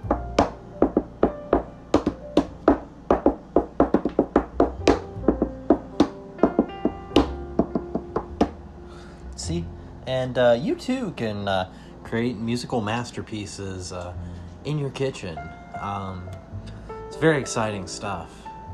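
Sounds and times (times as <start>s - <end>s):
hand drumming on a refrigerator: 0.0s - 8.6s
speech: 9.5s - 16.4s, 17.2s - 18.4s.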